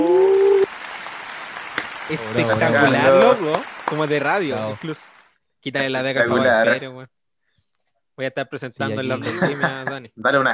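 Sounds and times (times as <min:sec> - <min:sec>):
applause: 0:00.0 - 0:06.7
laughter: 0:02.1 - 0:05.0, 0:06.2 - 0:06.8, 0:08.8 - 0:10.1
speech: 0:02.1 - 0:07.2, 0:08.2 - 0:10.5.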